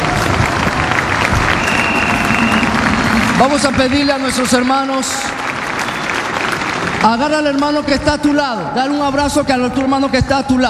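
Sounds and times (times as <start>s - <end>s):
audience applauding: 0.0s - 8.5s
speech: 3.4s - 5.4s, 7.0s - 10.6s.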